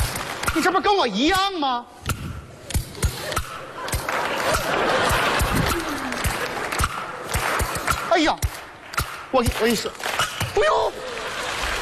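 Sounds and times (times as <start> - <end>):
speech: 0.6 - 2.0, 4.5 - 5.1, 8.2 - 8.5, 9.3 - 11.0
audience laughter: 3.1 - 7.8, 10.7 - 11.8
audience applause: 4.0 - 7.8, 9.6 - 11.8.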